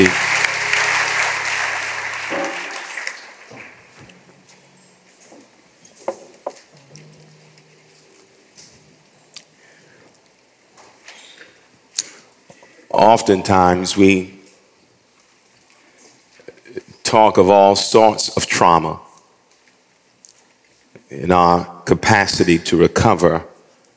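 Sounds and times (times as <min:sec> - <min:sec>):
audience applauding: 0:00.0 - 0:04.2
speech: 0:13.2 - 0:14.4, 0:17.1 - 0:19.1, 0:21.1 - 0:23.5.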